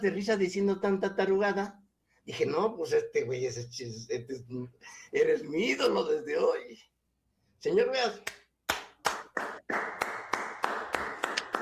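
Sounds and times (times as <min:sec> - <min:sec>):
speech: 0:00.0 - 0:06.9, 0:07.6 - 0:08.4
applause: 0:08.3 - 0:11.6.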